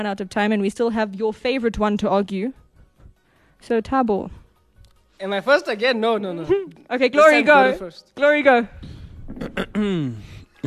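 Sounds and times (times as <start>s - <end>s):
speech: 0.0s - 2.6s, 3.6s - 4.4s, 5.2s - 10.6s
person clearing throat: 9.3s - 10.6s.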